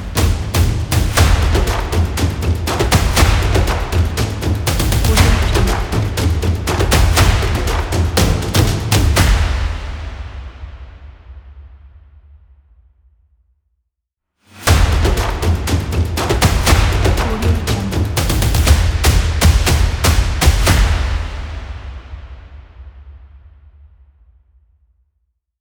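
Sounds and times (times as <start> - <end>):
sports drum music: 0.0 - 10.7, 14.6 - 22.2.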